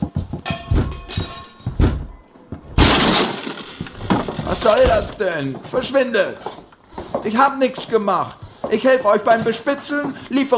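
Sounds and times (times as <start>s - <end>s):
door being broken open: 0.7s - 5.4s
speech: 4.5s - 6.6s, 7.2s - 10.5s.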